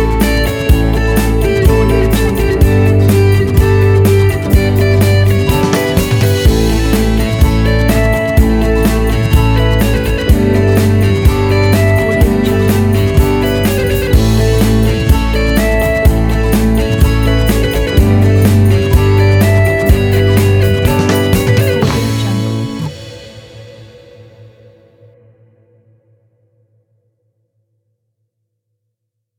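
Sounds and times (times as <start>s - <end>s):
happy uplifting corporate music: 0.0s - 22.9s.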